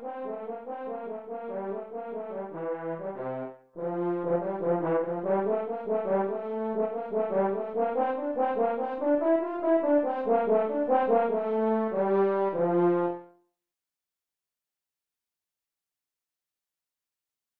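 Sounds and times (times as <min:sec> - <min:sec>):
transposed horn in a band: 0:00.0 - 0:13.4.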